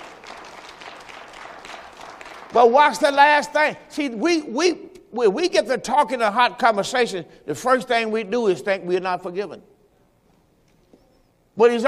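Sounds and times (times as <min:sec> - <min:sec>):
audience clapping hands: 0:00.0 - 0:03.2
speech: 0:02.5 - 0:09.7, 0:11.6 - 0:11.8.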